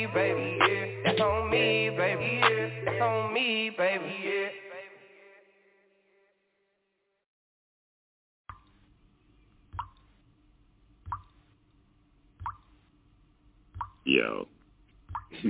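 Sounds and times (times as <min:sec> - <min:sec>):
speech: 0:00.0 - 0:04.7, 0:14.1 - 0:14.5
water dripping: 0:09.7 - 0:10.1, 0:11.0 - 0:11.4, 0:12.4 - 0:12.7, 0:13.7 - 0:14.1, 0:15.0 - 0:15.4.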